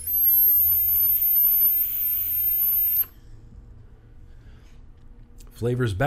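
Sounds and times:
device whistling from restricted airflow: 0.0s - 3.2s.

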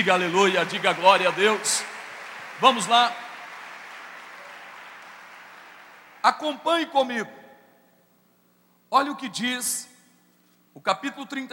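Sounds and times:
speech: 0.0s - 2.0s, 2.6s - 3.2s, 6.2s - 7.4s, 8.9s - 9.9s, 10.8s - 11.5s
audience applauding: 0.0s - 6.6s.

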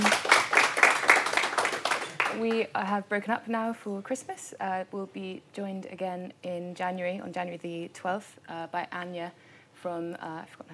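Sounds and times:
audience applause: 0.0s - 2.6s
speech: 2.4s - 10.7s.

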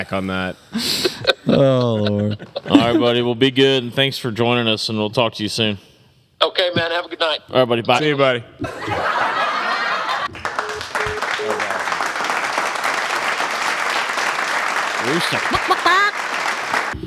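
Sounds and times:
speech: 0.0s - 9.2s, 15.1s - 15.8s
laughter: 0.8s - 3.2s, 8.6s - 11.9s, 15.1s - 16.2s
crowd applause sound effect: 9.2s - 17.0s.

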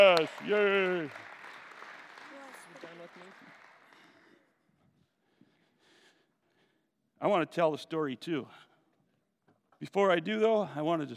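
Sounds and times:
speech: 0.0s - 1.3s, 7.2s - 8.7s, 9.8s - 11.1s
audience clapping for children at a Christmas gathering: 0.0s - 4.5s.

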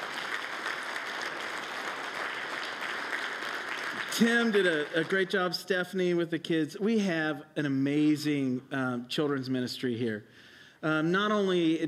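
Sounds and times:
audience applause: 0.0s - 5.5s
speech: 4.2s - 11.8s.

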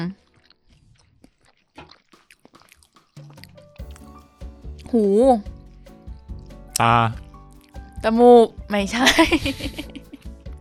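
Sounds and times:
speech: 0.0s - 0.2s, 4.9s - 5.6s, 6.8s - 7.2s, 8.0s - 9.9s
chewing and biting French fries while tasting: 0.0s - 7.8s
laughter: 8.9s - 10.3s.

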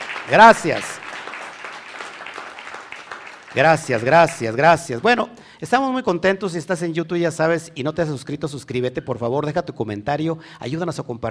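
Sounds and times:
crowd applauding: 0.0s - 5.0s
speech: 0.3s - 0.9s, 3.6s - 11.2s.

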